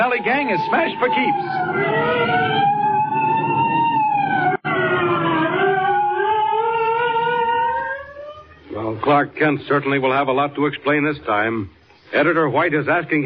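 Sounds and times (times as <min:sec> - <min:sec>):
speech: 0:00.0 - 0:02.4, 0:09.1 - 0:13.2
police siren wailing: 0:00.0 - 0:08.6.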